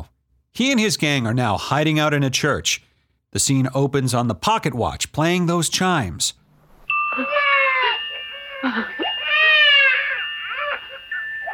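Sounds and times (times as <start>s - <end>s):
speech: 0.6s - 6.4s, 7.2s - 7.4s, 8.6s - 9.1s
child crying: 7.1s - 11.5s.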